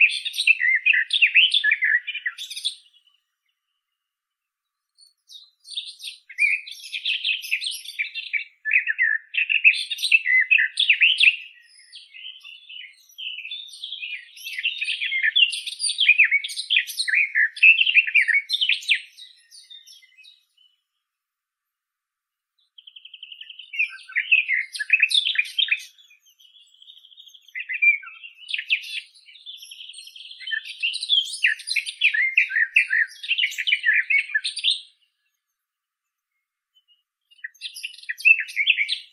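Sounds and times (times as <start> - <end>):
Sylvia borin garden warbler: 0.0 - 4.0, 4.6 - 21.0, 22.6 - 35.6, 36.3 - 39.1.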